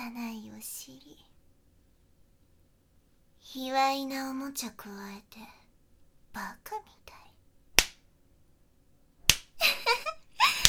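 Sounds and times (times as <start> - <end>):
speech: 0.1 - 1.3, 3.5 - 5.6, 6.4 - 7.2
slaps on bare buttocks: 7.8 - 8.0, 9.3 - 9.6.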